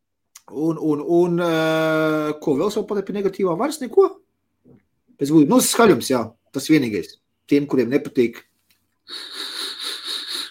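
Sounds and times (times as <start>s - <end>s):
speech: 0.5s - 4.2s, 5.2s - 8.5s, 9.1s - 9.5s
vape coil whistling loudly during a draw: 9.1s - 10.4s.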